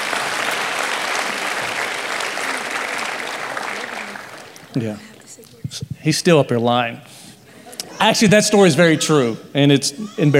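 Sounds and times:
audience applauding: 0.0 - 5.2
speech: 4.8 - 7.2, 8.0 - 10.3.

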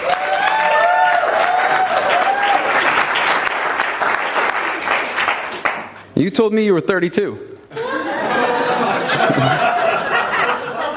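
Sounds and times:
audience clapping: 0.0 - 6.1
speech: 6.2 - 7.6
laughter: 7.7 - 10.9.

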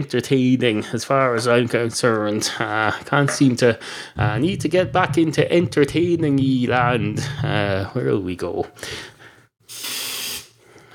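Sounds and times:
speech: 0.0 - 9.1
aerosol deodorant spraying at microphone: 9.7 - 10.6.

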